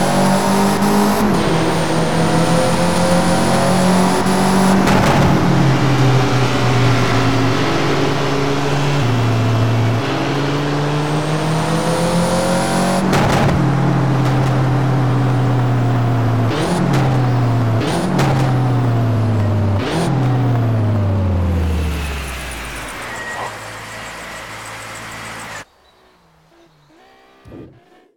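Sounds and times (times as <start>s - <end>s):
Honda Civic hatchback B18C VTEC engine: 0.0s - 28.1s.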